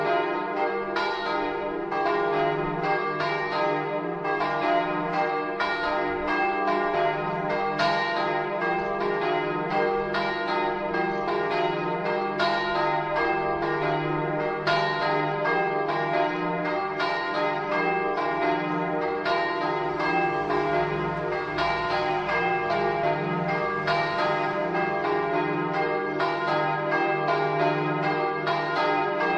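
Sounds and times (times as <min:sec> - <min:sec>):
bells ringing: 0:00.0 - 0:29.3.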